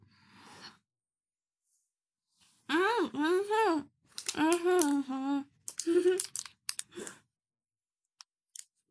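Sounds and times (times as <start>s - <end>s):
person making short vocal sounds: 2.7s - 6.4s
chewing chocolate without almonds from a variety pack: 5.7s - 7.1s.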